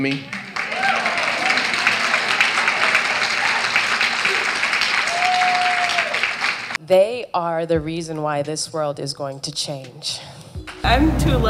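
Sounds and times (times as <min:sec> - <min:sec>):
speech: 0:00.0 - 0:00.4, 0:06.9 - 0:11.4
audience applause: 0:00.0 - 0:06.8.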